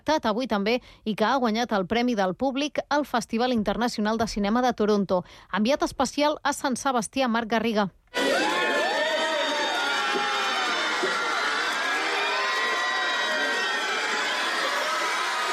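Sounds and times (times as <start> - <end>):
speech: 0.1 - 8.5
crowd cheering and shrieking for Brad Pitt outside Hotel Maria Cristina, San Sebastián: 8.2 - 15.5.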